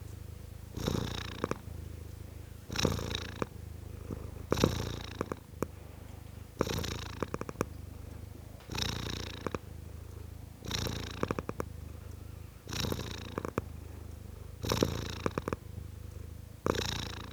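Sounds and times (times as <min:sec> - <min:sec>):
tom cat purring: 0:00.0 - 0:17.3.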